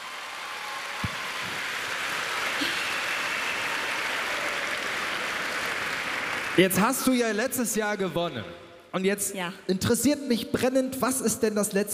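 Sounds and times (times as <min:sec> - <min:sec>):
large crowd applauding: 0:00.0 - 0:07.8
speech: 0:06.6 - 0:11.9.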